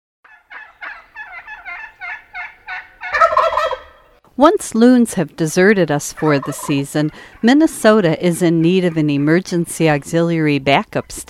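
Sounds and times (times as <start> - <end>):
wild turkey gobbling: 0.3 - 4.2, 6.1 - 9.7
speech: 4.4 - 11.2.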